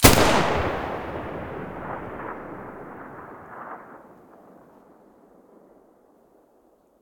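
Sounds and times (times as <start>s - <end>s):
G36 rifle muzzle gunshots: 0.0s - 4.2s.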